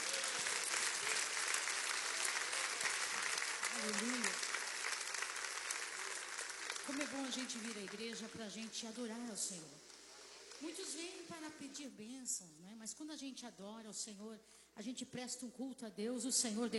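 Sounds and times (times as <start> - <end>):
audience applauding: 0.0 - 8.7
speech: 3.8 - 4.4, 6.9 - 10.0, 10.6 - 16.7.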